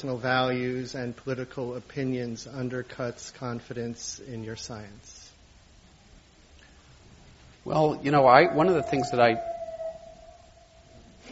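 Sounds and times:
speech: 0.0s - 5.2s, 7.6s - 9.5s
low rumble: 5.2s - 11.3s
faint ambulance siren outside: 8.2s - 11.3s.

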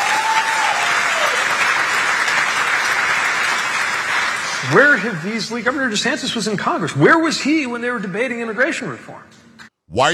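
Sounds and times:
audience clapping for a politician's line about immigration: 0.0s - 6.1s
speech: 4.6s - 10.1s.

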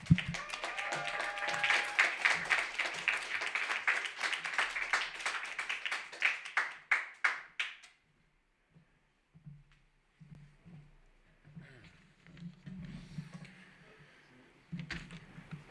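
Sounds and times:
audience applause for the first reader at an open mic: 0.0s - 7.8s.

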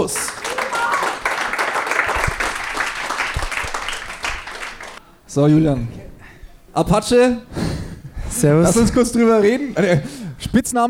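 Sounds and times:
speech: 0.0s - 0.3s, 5.3s - 6.0s, 6.8s - 7.7s, 8.3s - 10.8s
audience applause: 0.0s - 5.0s.

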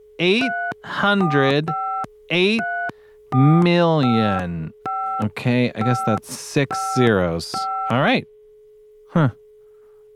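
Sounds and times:
faint constant dial tone: 0.0s - 10.1s
speech: 0.2s - 2.7s, 3.3s - 8.3s, 9.2s - 9.4s
phone keypad tones from a number being dialed: 0.2s - 8.0s
person making humming wordless sounds: 9.1s - 9.4s.

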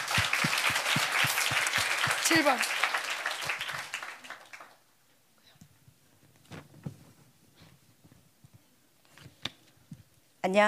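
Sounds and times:
crowd applause: 0.0s - 4.9s
speech: 2.3s - 2.8s, 10.5s - 10.6s.

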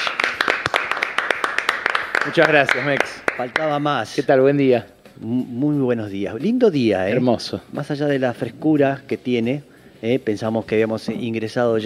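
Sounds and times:
loud applause: 0.0s - 3.7s
speech: 2.3s - 11.8s.

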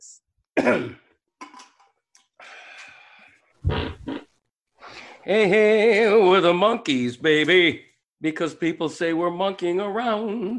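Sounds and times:
speech: 0.6s - 1.0s, 5.3s - 10.5s
fart: 3.6s - 4.4s.

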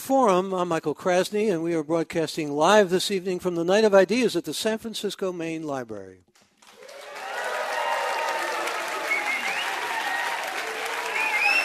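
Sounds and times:
speech: 0.1s - 6.3s
live audience applauding at the Night of Ideas, San Francisco Main Library: 6.4s - 11.6s.

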